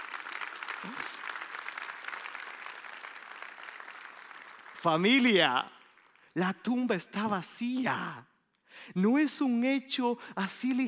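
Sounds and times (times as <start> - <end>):
audience applause: 0.0 - 6.3
speech: 0.8 - 1.2, 4.8 - 5.8, 6.4 - 10.8.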